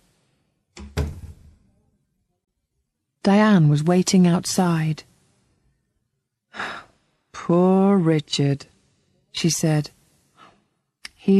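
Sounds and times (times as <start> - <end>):
door closing thump: 0.8 - 1.6
speech: 3.2 - 5.1, 7.5 - 8.7, 9.4 - 10.0.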